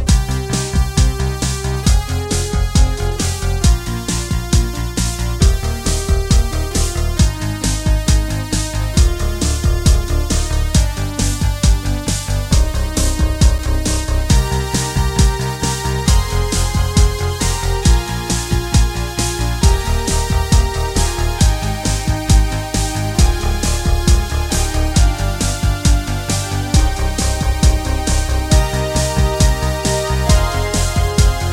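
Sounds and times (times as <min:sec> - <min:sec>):
classical piece in 80s synth style: 0:00.1 - 0:31.5.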